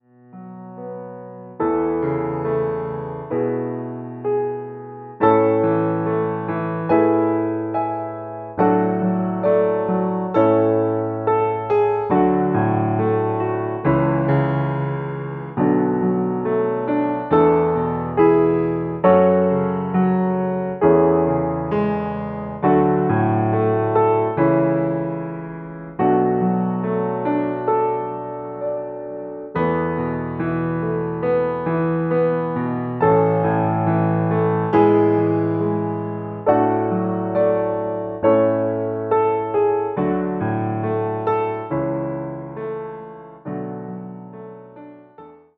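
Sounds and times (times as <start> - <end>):
piano karaoke track: 0.2 - 45.4.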